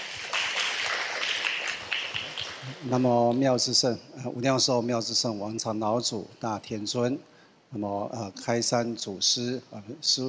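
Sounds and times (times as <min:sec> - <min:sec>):
audience applauding to welcome a speaker at a Buddhist gathering: 0:00.0 - 0:03.0
speech: 0:02.6 - 0:10.2.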